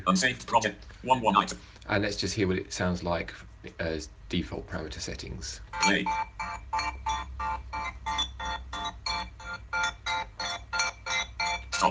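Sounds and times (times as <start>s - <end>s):
speech: 0.1s - 7.6s
music chopped up by stutter effect plugin: 5.8s - 11.8s.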